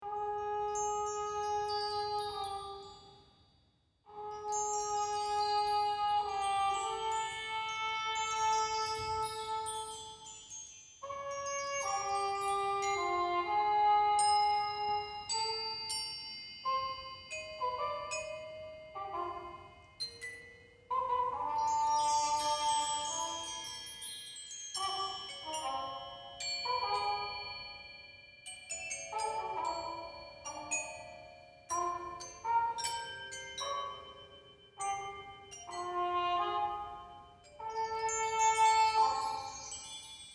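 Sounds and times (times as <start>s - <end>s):
trumpet: 0.0s - 3.2s, 4.1s - 10.4s, 11.0s - 20.2s, 20.9s - 24.0s, 24.8s - 28.0s, 29.0s - 39.8s.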